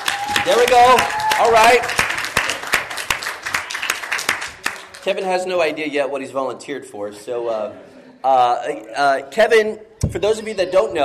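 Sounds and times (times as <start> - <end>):
audience applause: 0.0 - 5.3
speech: 0.4 - 2.0, 5.0 - 11.0.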